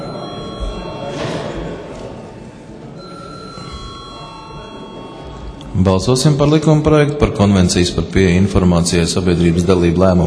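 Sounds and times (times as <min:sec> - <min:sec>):
parliament chamber bell ringing before vote: 0:00.0 - 0:01.8, 0:03.0 - 0:06.4
murmur of voices: 0:00.0 - 0:10.2
speech: 0:05.8 - 0:10.2.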